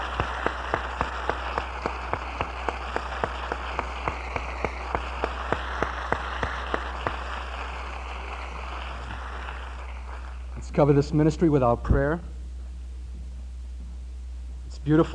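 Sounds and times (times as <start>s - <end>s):
audience applause: 0.0s - 10.4s
speech: 10.8s - 12.4s, 14.8s - 15.1s.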